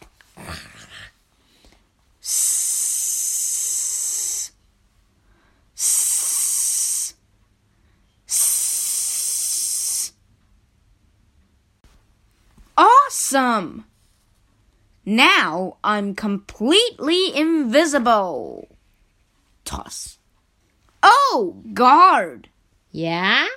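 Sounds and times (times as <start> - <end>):
aerosol spray hissing: 5.8 - 7.1, 8.3 - 10.1
speech: 13.3 - 13.9, 15.1 - 18.7, 21.3 - 23.5.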